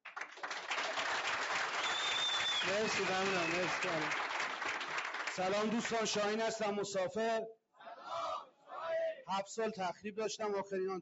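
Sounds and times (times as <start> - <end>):
audience clapping at an addiction recovery group meeting: 0.0 - 6.4
speech: 2.6 - 4.2, 5.4 - 7.6, 9.3 - 10.9.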